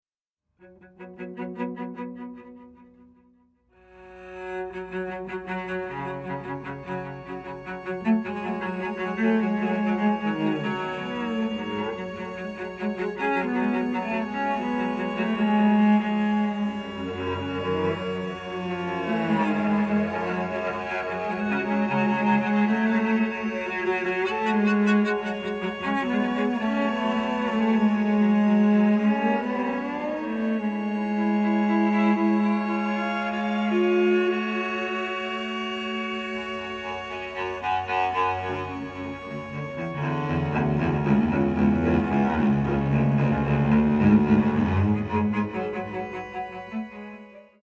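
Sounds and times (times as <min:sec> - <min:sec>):
cello: 0:00.6 - 0:47.6.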